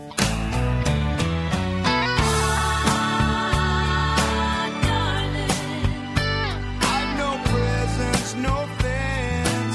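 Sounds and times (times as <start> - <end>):
party song: 0.2 - 9.7.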